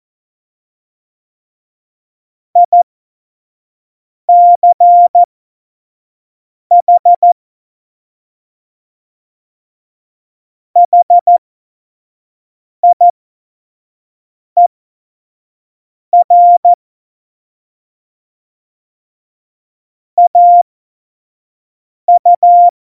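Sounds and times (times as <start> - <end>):
CW Morse code beeps: 2.6 - 2.8, 4.3 - 5.3, 6.7 - 7.4, 10.8 - 11.4, 12.8 - 13.1, 16.2 - 16.8, 20.2 - 20.6, 22.1 - 22.7.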